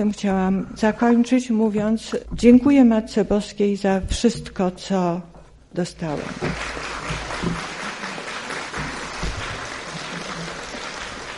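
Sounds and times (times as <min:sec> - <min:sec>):
speech: 0:00.0 - 0:07.6
audience clapping: 0:06.1 - 0:11.3.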